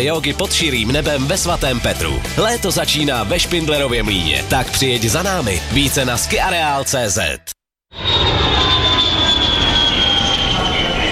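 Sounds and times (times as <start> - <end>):
speech: 0.0 - 8.0
loud jet aircraft engine roar at an airport: 8.0 - 11.1.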